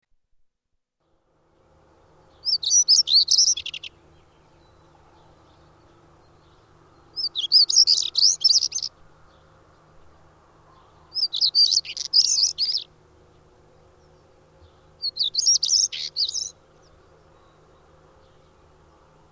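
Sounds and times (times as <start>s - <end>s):
songbird warbling chirps: 2.2s - 9.9s, 10.6s - 19.1s.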